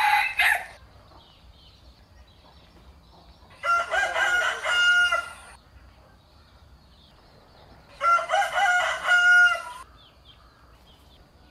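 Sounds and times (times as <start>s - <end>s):
rooster crowing: 0.0s - 0.8s, 3.6s - 5.6s, 8.0s - 9.9s.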